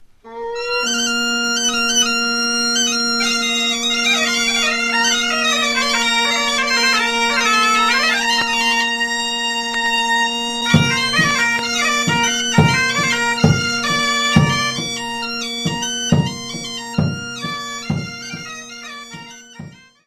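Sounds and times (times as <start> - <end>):
laride folk dance tune from Carnac in Brittany France: 0.3 - 20.0.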